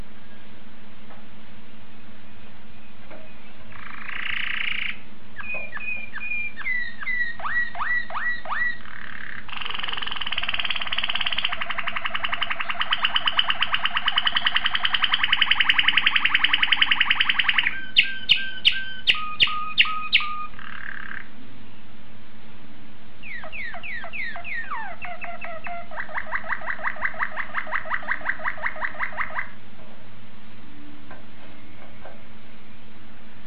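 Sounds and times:
low steady hum: 0:00.0 - 0:33.4
domestic canary singing: 0:03.4 - 0:21.4, 0:23.2 - 0:29.6.

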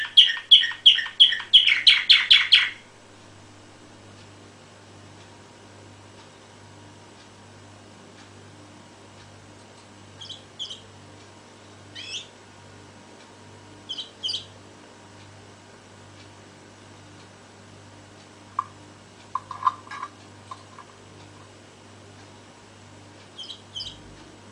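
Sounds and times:
canary song: 0:00.0 - 0:02.9, 0:10.1 - 0:11.0, 0:11.8 - 0:12.4, 0:13.8 - 0:14.6, 0:23.2 - 0:24.1.

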